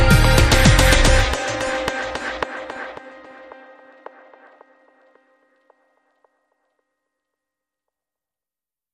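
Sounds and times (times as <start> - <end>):
techno music: 0.0 - 5.3.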